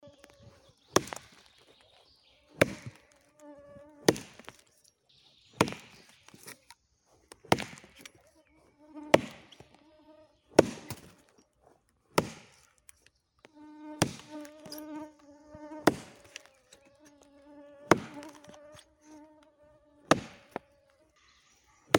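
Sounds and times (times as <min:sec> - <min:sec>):
chopping wood in the forest: 0:00.2 - 0:04.8, 0:05.5 - 0:06.7, 0:07.3 - 0:08.2, 0:09.1 - 0:09.8, 0:10.5 - 0:15.0, 0:15.8 - 0:17.2, 0:17.9 - 0:18.9, 0:20.0 - 0:21.0.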